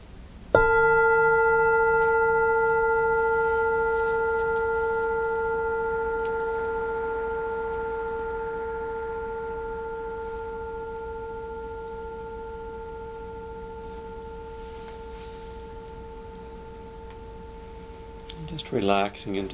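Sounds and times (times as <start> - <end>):
meditation bell ringing: 0.6 - 19.5
speech: 18.8 - 19.5.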